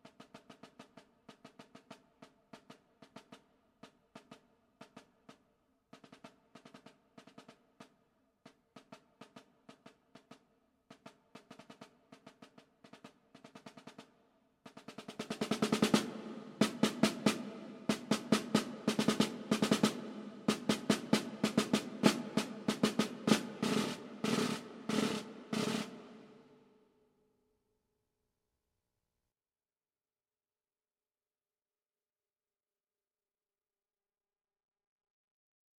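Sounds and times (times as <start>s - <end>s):
snare drum: 0.0s - 26.6s.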